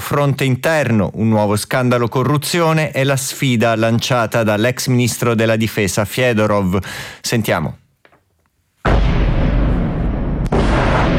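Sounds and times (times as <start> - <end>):
speech: 0.1 - 7.8
night bombardment booms: 8.8 - 11.1.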